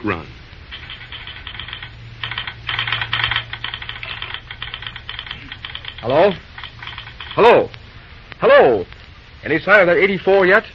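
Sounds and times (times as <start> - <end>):
speech: 0.0 - 0.4, 6.0 - 6.5, 7.4 - 7.8, 8.4 - 10.7
steady low hum: 0.0 - 10.7
telegraph key clicking: 0.7 - 7.4.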